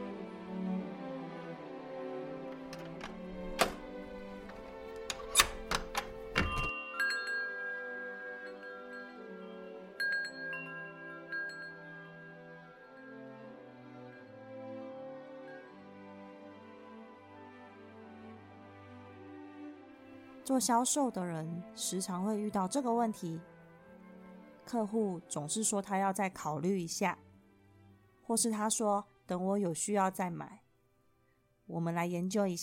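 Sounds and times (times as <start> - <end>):
music: 0.0 - 32.6
key unlocking and opening a door: 2.6 - 6.7
faint chime-like tones: 6.4 - 13.5
speech: 20.5 - 23.5, 24.7 - 27.2, 28.3 - 30.6, 31.7 - 32.6.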